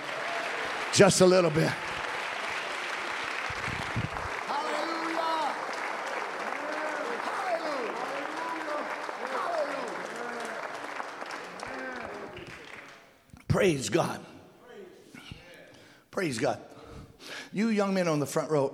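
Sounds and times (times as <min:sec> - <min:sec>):
crowd clapping: 0:00.0 - 0:13.2
speech: 0:00.9 - 0:01.9, 0:13.6 - 0:14.2, 0:16.2 - 0:16.7, 0:17.5 - 0:18.7.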